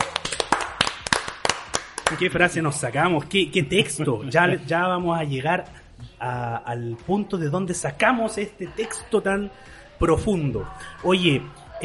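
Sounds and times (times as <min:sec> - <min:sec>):
a few people clapping: 0:00.0 - 0:02.6
speech: 0:02.1 - 0:11.8.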